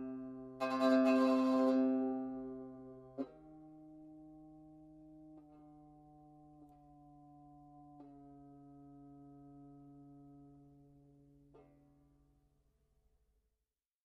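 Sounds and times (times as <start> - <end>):
e-bow melody on banjo: 0.0 - 11.0.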